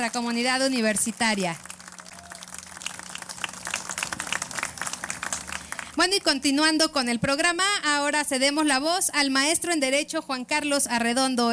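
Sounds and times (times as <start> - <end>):
speech: 0.0 - 1.7, 6.0 - 11.5
crowd applauding: 0.0 - 6.4.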